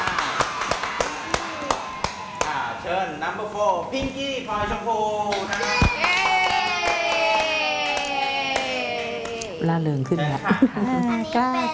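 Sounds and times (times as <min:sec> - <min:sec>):
audience clapping: 0:00.0 - 0:02.6, 0:05.3 - 0:09.5
speech: 0:03.2 - 0:06.0, 0:09.7 - 0:11.7.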